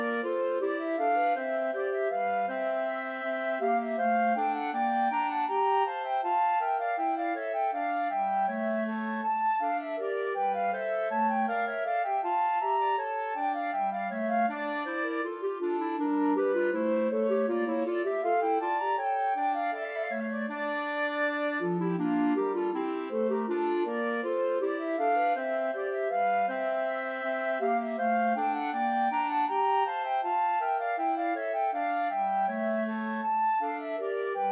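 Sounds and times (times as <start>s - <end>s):
clarinet playing a bourree: 0.0s - 34.5s
flute playing a bourree: 0.0s - 34.5s.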